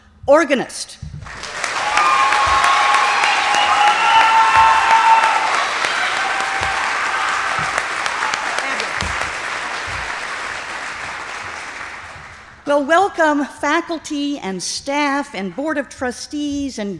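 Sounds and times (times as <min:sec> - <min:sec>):
speech: 0:00.3 - 0:01.1, 0:12.7 - 0:16.9
audience applause at a university opening convocation and worship service: 0:01.2 - 0:12.7.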